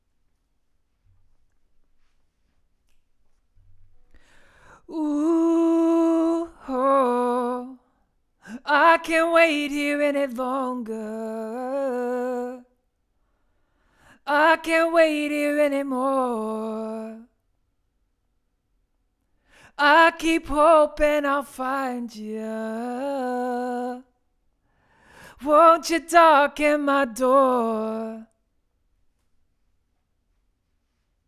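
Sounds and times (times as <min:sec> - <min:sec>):
vocals: 0:04.1 - 0:17.5, 0:19.4 - 0:28.6.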